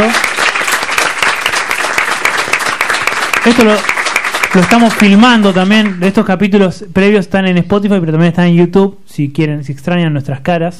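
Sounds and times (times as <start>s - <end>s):
crowd applause at a live radio show recording: 0.0s - 6.0s
speech: 3.4s - 3.9s, 4.5s - 10.7s.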